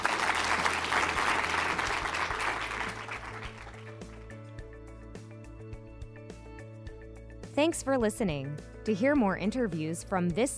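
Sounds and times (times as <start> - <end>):
audience applause: 0.0 - 4.3
speech: 7.6 - 10.5.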